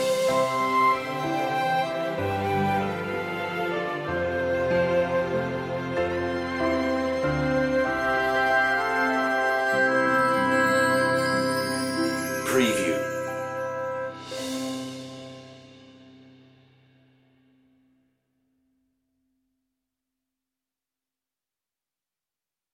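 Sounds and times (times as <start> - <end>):
orchestral music: 0.0 - 16.4.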